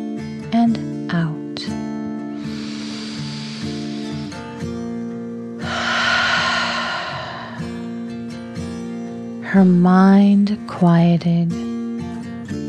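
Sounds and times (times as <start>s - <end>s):
soft sustained music: 0.0s - 8.0s, 8.6s - 12.6s
speech: 0.6s - 1.8s, 9.5s - 11.6s
slow deep breathing during a relaxation exercise: 2.4s - 4.5s, 5.6s - 8.3s.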